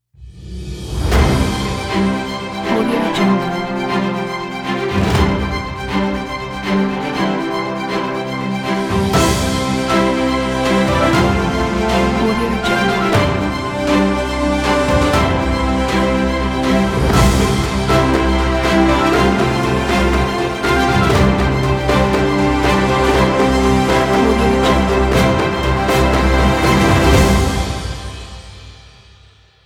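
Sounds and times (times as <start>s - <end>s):
victory award fanfare ident: 1.2s - 29.2s.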